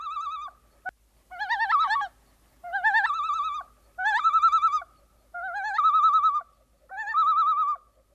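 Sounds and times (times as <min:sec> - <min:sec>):
bird wavering tremolo call in flight: 0:00.0 - 0:08.0.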